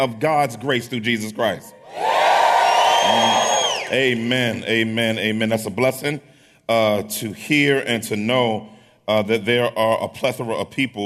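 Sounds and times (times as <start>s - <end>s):
speech: 0.0s - 2.1s, 3.0s - 11.0s
large crowd shouting and cheering: 1.8s - 4.3s.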